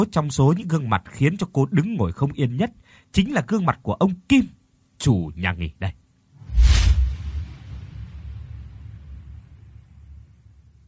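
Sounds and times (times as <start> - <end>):
speech: 0.0 - 6.0
lightning strike crack effect in an audio drama: 6.4 - 9.8
low thunder rumble: 6.4 - 10.8.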